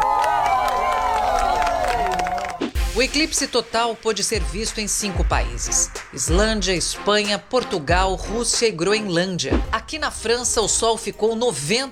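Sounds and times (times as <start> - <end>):
crowd in Iceland cheering and clapping during a total solar eclipse: 0.0 - 2.8
many voices shouting and whooping: 0.0 - 2.8
speech: 3.0 - 11.9.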